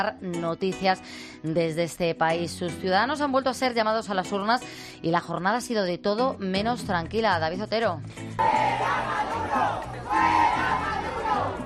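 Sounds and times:
speech: 0.0s - 10.9s
large protest crowd chanting for resignation: 8.4s - 11.6s
scattered voices: 8.4s - 11.6s.

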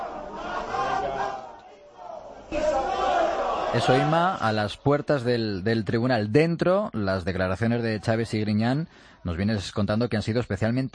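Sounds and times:
crowd booing and shouting insults: 0.0s - 4.5s
speech: 3.7s - 10.9s.

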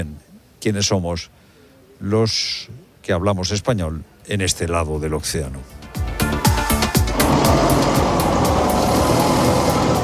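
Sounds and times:
speech: 0.0s - 1.4s, 2.0s - 5.9s
heavy excavators grinding and rumbling: 6.8s - 10.0s.

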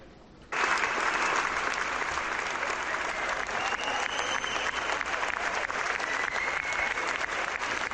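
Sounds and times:
ovation after a film screening at the Festival de San Sebastián: 0.5s - 7.9s.

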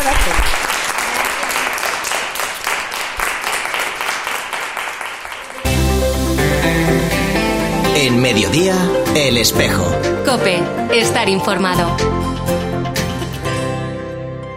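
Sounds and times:
crowd applauding: 0.0s - 7.3s
music: 5.6s - 14.5s
speech: 8.5s - 12.6s.

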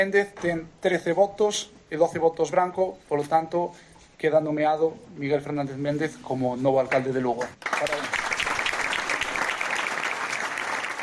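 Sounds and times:
speech: 0.0s - 8.2s
crowd applause: 7.6s - 11.0s.

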